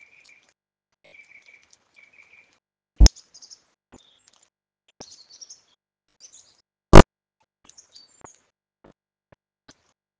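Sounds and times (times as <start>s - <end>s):
birds: 0.0s - 6.7s, 7.6s - 8.5s.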